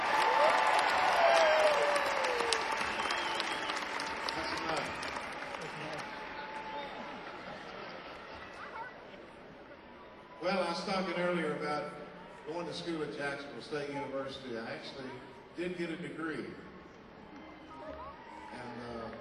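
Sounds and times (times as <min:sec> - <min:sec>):
concert audience applause: 0:00.0 - 0:08.8
speech: 0:10.9 - 0:16.7.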